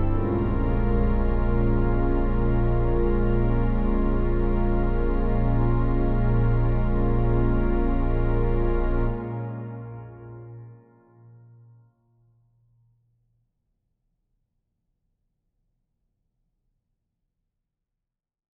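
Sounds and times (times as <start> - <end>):
meditative organ music: 0.0 - 11.0.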